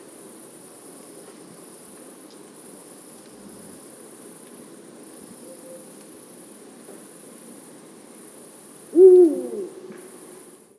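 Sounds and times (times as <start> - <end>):
eagle owl: 8.9 - 10.5.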